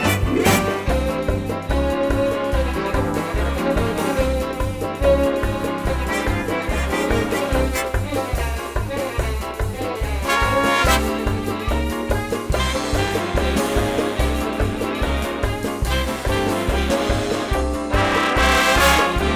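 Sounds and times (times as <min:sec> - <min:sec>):
musical accompaniment: 0:00.0 - 0:19.3.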